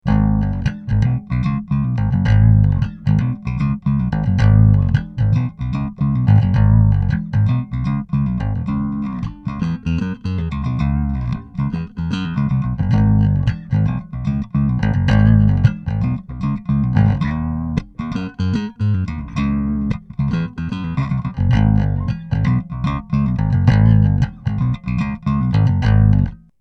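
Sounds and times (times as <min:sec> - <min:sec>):
musical riff: 0:00.1 - 0:26.4.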